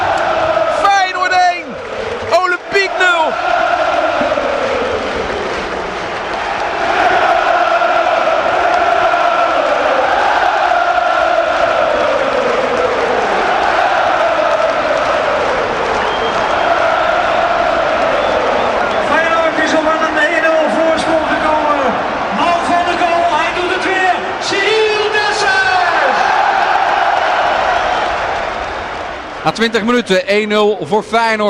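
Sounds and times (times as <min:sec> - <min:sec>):
stadium crowd cheering after a goal: 0:00.0 - 0:31.4
shrill whistles: 0:15.9 - 0:17.2
speech: 0:29.6 - 0:31.4.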